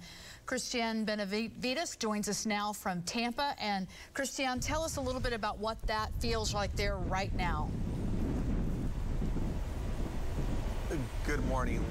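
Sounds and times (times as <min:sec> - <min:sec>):
speech: 0:00.5 - 0:07.9, 0:11.0 - 0:11.8
strong storm wind roaring: 0:04.6 - 0:11.8.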